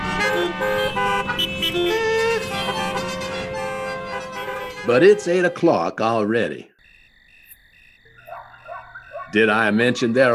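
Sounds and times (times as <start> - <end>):
chorus of car horns honking: 0.0 - 6.0
speech: 4.9 - 6.7, 9.3 - 10.3.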